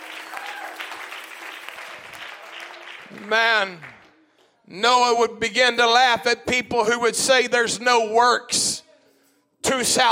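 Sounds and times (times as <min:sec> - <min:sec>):
audience clapping hands: 0:00.0 - 0:04.6
speech: 0:03.1 - 0:03.9, 0:04.7 - 0:08.8, 0:09.6 - 0:10.1.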